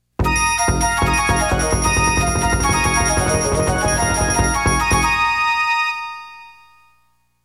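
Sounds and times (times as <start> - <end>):
game success sound: 0.2 - 5.5.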